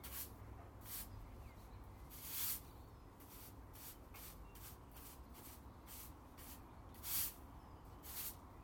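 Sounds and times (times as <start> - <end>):
brushing in a garden: 0.0 - 1.2, 2.1 - 7.4, 8.0 - 8.4
garden raking: 0.0 - 8.5.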